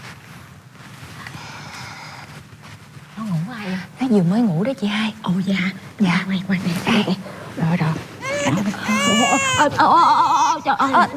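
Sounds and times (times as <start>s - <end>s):
speech: 3.2s - 11.1s
baby crying: 8.2s - 11.1s.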